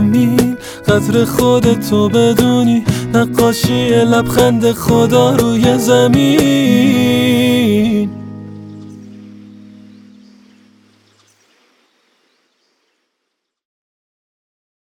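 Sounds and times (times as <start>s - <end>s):
song: 0.0s - 10.0s.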